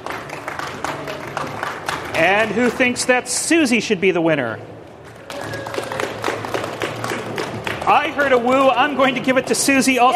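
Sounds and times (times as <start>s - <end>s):
audience applause: 0.0s - 3.0s, 5.1s - 9.3s
speech: 2.2s - 4.7s, 7.9s - 10.1s.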